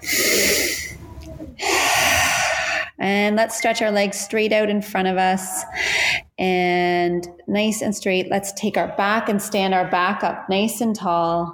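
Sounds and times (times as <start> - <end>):
deep breath during a stretching exercise: 0.0 - 1.0, 1.6 - 2.9, 5.7 - 6.3
speech: 3.0 - 11.5.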